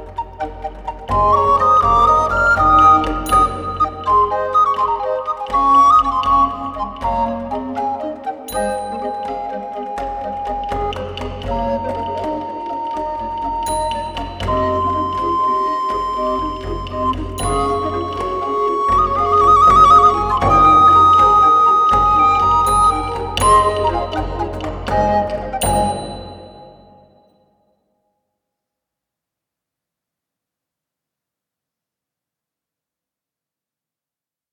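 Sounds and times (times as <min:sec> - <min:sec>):
baroque dance piece: 0:00.0 - 0:27.2.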